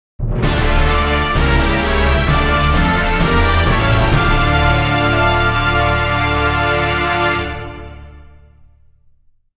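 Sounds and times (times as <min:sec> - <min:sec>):
stage clear jingle: 0:00.4 - 0:08.5.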